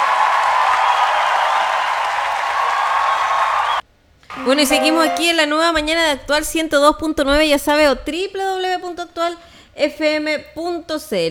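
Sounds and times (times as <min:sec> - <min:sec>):
loud sustained crowd applause: 0:00.0 - 0:05.2
speech: 0:04.4 - 0:11.2.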